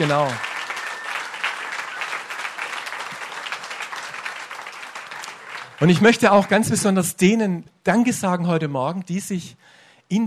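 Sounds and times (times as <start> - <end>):
speech: 0.0 - 0.5, 5.8 - 10.2
audience applause: 0.0 - 6.8.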